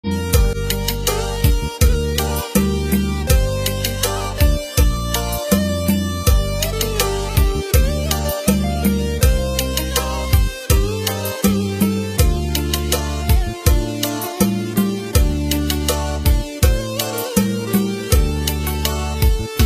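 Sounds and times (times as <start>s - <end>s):
sweet instrumental rumba guitar: 0.4s - 19.6s.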